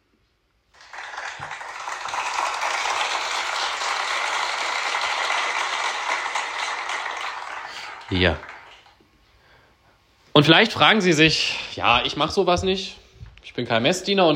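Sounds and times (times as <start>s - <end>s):
audience clapping: 0.8s - 9.0s
speech: 8.1s - 8.5s, 10.4s - 13.0s, 13.6s - 14.3s.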